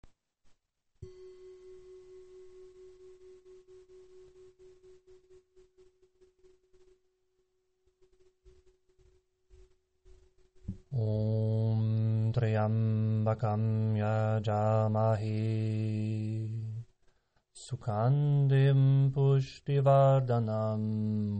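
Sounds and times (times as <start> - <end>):
mantra chanting: 10.9 - 16.8, 17.6 - 21.3.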